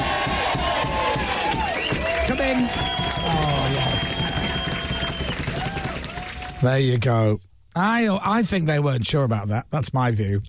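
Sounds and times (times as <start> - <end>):
round of applause: 0.0 - 6.7
speech: 6.6 - 10.4.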